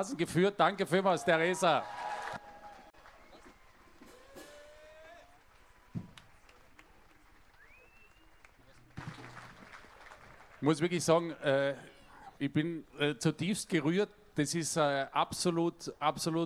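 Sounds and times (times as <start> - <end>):
speech: 0.0 - 2.2, 10.6 - 16.4
audience applause: 1.2 - 10.8
whistle-like tones: 7.6 - 8.4.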